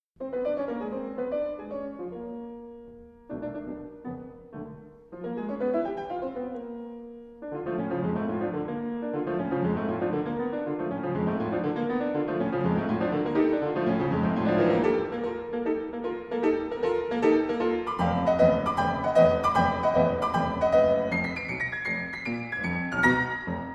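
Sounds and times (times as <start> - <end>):
calm piano: 0.2 - 23.7.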